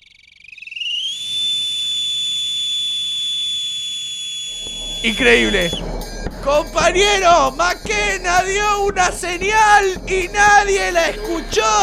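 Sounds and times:
person whistling: 1.2s - 5.8s
speech: 5.0s - 11.8s.

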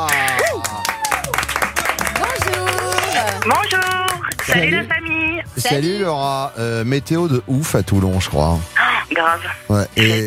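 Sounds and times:
studio audience applause welcoming a guest: 0.0s - 4.8s
speech: 3.4s - 10.2s.

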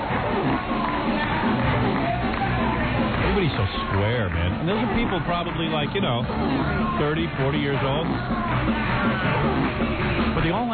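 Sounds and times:
crowd chanting and cheering: 0.0s - 10.7s
speech: 4.0s - 10.7s.

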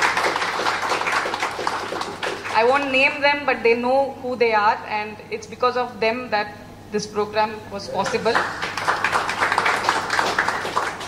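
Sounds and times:
crowd applauding: 0.0s - 2.8s, 8.1s - 11.0s
speech: 2.6s - 8.6s.

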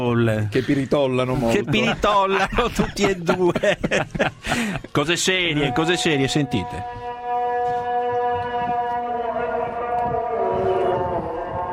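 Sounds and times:
speech: 0.0s - 7.0s
muezzin's amplified call to prayer: 1.3s - 11.7s
laughter: 1.4s - 5.4s.

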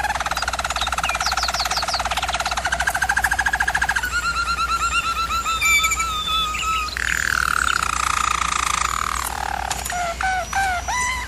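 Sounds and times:
German Roller canary song: 0.0s - 11.2s.

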